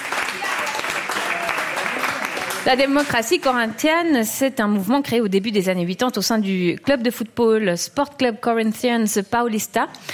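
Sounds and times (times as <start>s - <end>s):
quiz show studio audience applause for a correct answer: 0.0s - 3.5s
speech: 2.6s - 10.1s.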